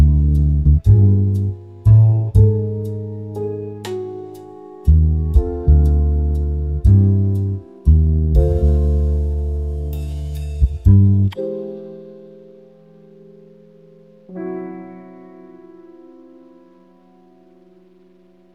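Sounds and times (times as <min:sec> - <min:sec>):
sleep jazz: 0:00.0 - 0:12.5.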